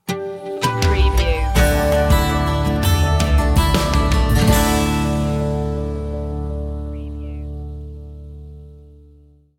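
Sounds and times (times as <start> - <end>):
music sting: 0.8 - 8.3.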